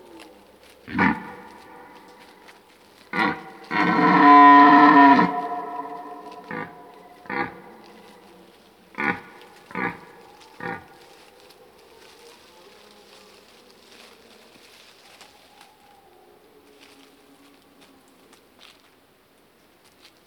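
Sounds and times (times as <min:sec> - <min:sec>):
red deer stag grunting and roaring: 0:00.8 - 0:02.4, 0:03.0 - 0:08.3, 0:08.9 - 0:11.0.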